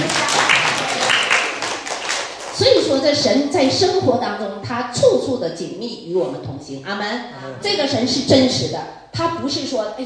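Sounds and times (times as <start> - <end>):
church congregation applauding: 0.0 - 2.6
speech: 2.6 - 10.0.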